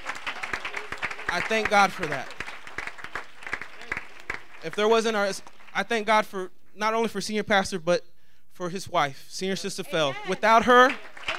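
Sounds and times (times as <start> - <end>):
audience clapping hands: 0.0 - 6.2, 9.9 - 11.3
speech: 1.3 - 2.4, 4.6 - 11.1.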